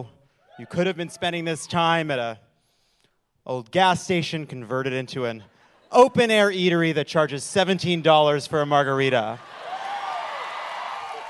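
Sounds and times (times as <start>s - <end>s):
speech: 0.0s - 2.5s, 3.4s - 9.6s
audience cheering and whooping: 0.5s - 1.8s, 9.2s - 11.2s.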